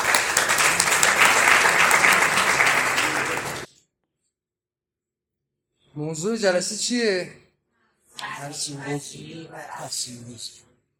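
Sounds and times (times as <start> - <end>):
audience applause: 0.0 - 3.7
speech: 6.0 - 7.4, 8.4 - 10.7.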